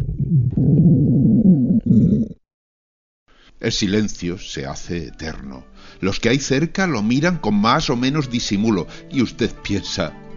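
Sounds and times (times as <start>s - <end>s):
stomach rumbling: 0.0s - 2.4s
speech: 0.3s - 1.3s, 3.6s - 10.2s.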